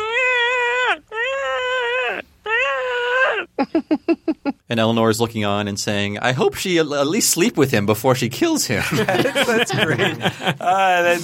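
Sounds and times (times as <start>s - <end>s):
voice imitating a whale's love call: 0.0s - 3.6s
speech: 3.6s - 11.2s
laughter: 8.8s - 11.2s.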